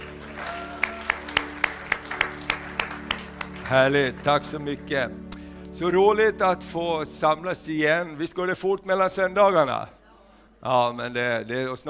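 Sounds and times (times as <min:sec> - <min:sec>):
audience applause: 0:00.0 - 0:04.6
speech: 0:03.7 - 0:10.0, 0:10.6 - 0:11.8.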